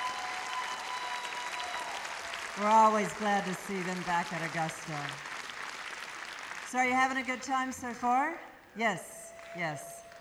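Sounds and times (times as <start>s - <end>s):
audience applause: 0.0s - 6.8s
speech: 2.6s - 5.3s, 6.7s - 9.9s.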